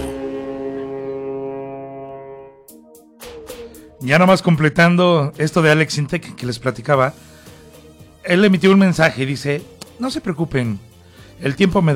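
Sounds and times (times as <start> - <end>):
ship's sonar sound effect: 0.0 - 4.0
speech: 4.0 - 7.3, 8.3 - 11.9.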